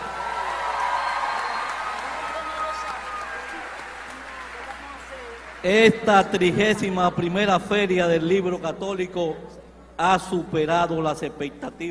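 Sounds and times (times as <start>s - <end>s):
audience applause: 0.0s - 6.9s
speech: 5.6s - 11.8s.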